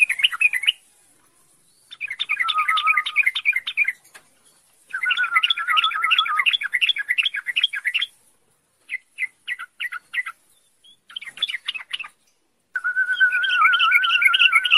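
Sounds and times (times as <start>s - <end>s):
songbird twittering: 1.9s - 4.0s, 4.9s - 8.1s, 8.9s - 12.2s, 12.8s - 14.7s.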